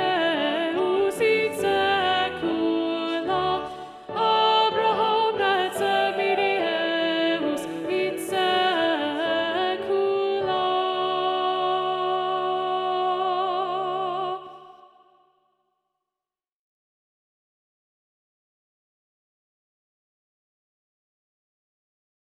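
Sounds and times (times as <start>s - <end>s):
SATB choir singing with alto predominant: 0.0s - 15.0s.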